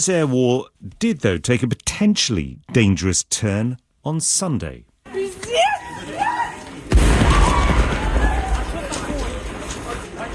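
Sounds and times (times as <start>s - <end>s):
speech: 0.0s - 4.9s
people screaming as a drone strikes a train: 5.4s - 9.5s
heavy boom of a drone striking a train: 6.9s - 9.7s
rumbling and clatter: 7.0s - 10.3s.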